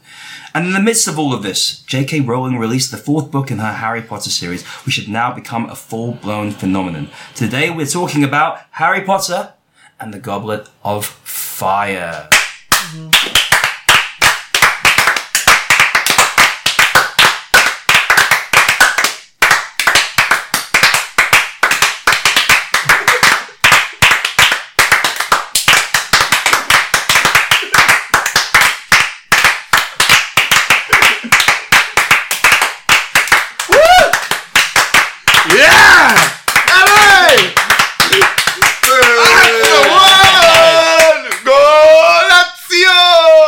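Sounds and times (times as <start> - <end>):
speech: 0.5 - 13.2
group applause: 12.3 - 42.3.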